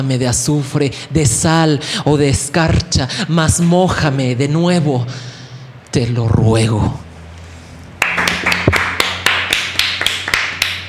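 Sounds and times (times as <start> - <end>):
speech: 0.0 - 5.4, 6.0 - 7.0
applause sound effect: 8.0 - 10.8.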